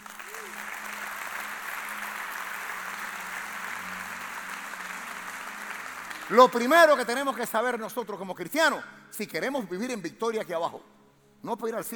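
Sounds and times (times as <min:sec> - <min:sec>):
audience applause: 0:00.0 - 0:06.8
speech: 0:06.3 - 0:11.9.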